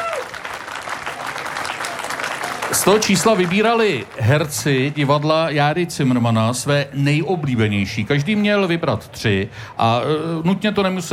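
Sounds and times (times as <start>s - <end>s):
crowd applause: 0.0s - 6.2s
speech: 2.8s - 11.1s.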